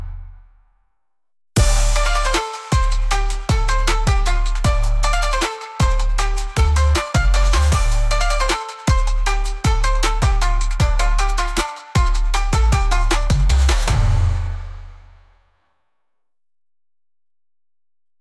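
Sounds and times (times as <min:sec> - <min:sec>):
bass pulse: 0:01.6 - 0:11.4, 0:12.0 - 0:15.3.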